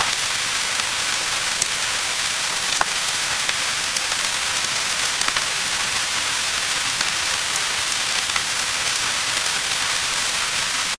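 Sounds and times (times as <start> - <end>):
rain: 0.0 - 10.9.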